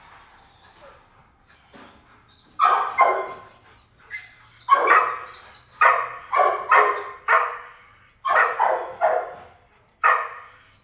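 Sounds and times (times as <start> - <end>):
kennel dog barking: 2.6 - 3.6, 4.7 - 10.5.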